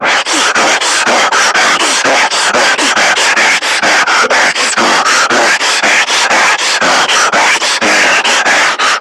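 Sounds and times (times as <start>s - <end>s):
screamer breathing while running: 0.0s - 8.9s.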